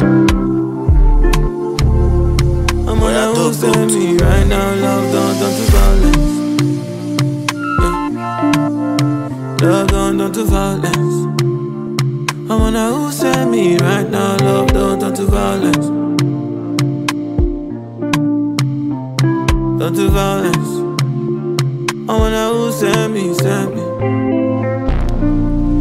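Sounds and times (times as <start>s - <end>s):
instrumental beat hook: 0.0s - 25.8s.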